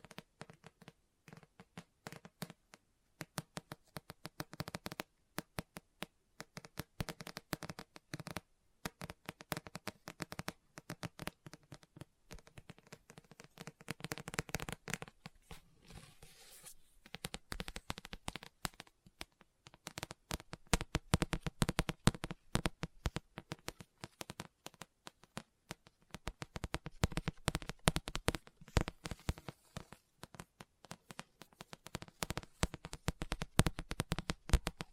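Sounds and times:
fingers tapping and scratching on a book: 3.2 - 34.9
page turn: 15.5 - 16.9.

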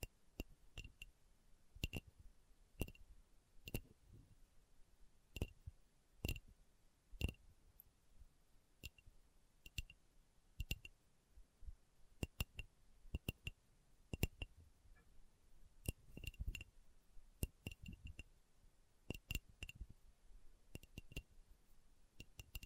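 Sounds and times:
slow tapping on glass or hard plastic: 0.0 - 1.2, 1.8 - 2.1, 2.8 - 3.9, 5.3 - 6.5, 7.2 - 7.4, 8.8 - 10.0, 10.6 - 11.0, 12.2 - 15.1, 15.8 - 16.7, 17.4 - 18.3, 19.1 - 20.0, 20.7 - 21.3, 22.2 - 22.6.

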